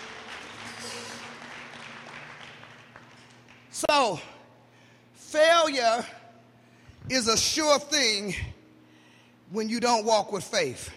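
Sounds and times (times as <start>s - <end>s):
crowd clapping: 0.0s - 3.9s
speech: 3.8s - 4.4s, 5.3s - 6.2s, 7.1s - 8.5s, 9.5s - 10.9s.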